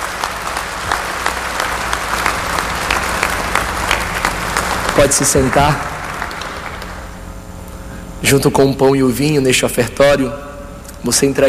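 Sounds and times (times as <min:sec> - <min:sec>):
audience applause: 0:00.0 - 0:07.2
speech: 0:05.0 - 0:05.9, 0:08.2 - 0:11.4.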